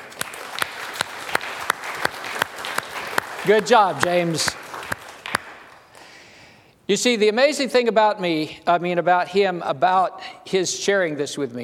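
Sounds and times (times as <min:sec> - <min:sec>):
round of applause: 0:00.0 - 0:05.8
speech: 0:03.4 - 0:04.6, 0:06.9 - 0:11.6.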